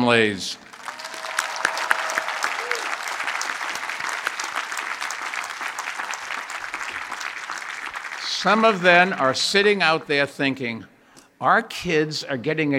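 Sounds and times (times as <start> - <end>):
speech: 0.0 - 0.6, 8.4 - 12.7
large audience applause: 0.6 - 10.0.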